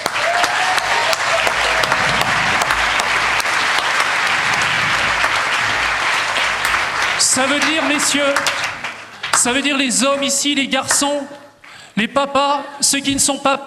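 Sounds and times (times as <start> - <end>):
audience applause: 0.0 - 10.4
speech: 7.4 - 8.6, 9.4 - 11.4, 12.0 - 13.6.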